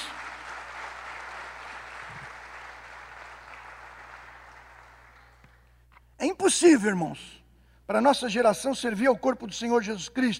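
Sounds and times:
audience applause: 0.0s - 5.6s
speech: 6.2s - 10.3s.

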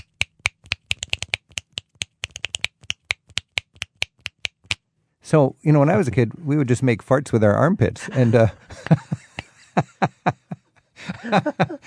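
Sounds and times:
flamenco-style finger snapping: 0.0s - 4.8s
speech: 5.3s - 9.2s, 11.3s - 11.7s
laughter: 8.0s - 11.8s.

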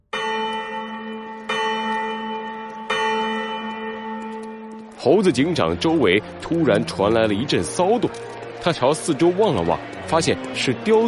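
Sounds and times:
loud bell ringing: 0.0s - 11.0s
speech: 5.0s - 11.0s.

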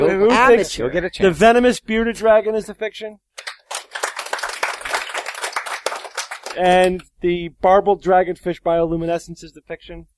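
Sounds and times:
speech: 0.0s - 3.5s, 6.6s - 10.1s
audience applause voting on a science claim: 3.4s - 6.6s.

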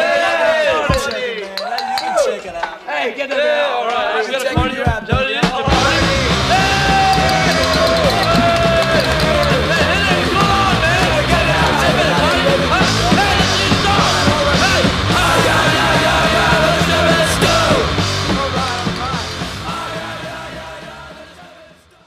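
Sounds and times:
party crowd yelling and whooping: 0.0s - 22.0s
punk rock band playing: 4.7s - 21.6s.

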